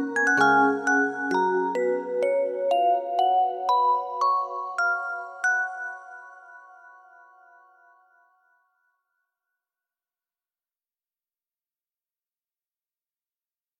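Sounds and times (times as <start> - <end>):
music box: 0.0 - 8.6.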